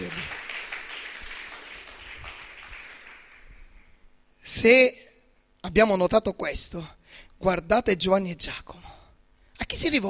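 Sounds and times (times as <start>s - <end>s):
audience applauding: 0.0s - 3.7s
speech: 4.6s - 5.0s, 5.7s - 9.0s, 9.6s - 10.0s.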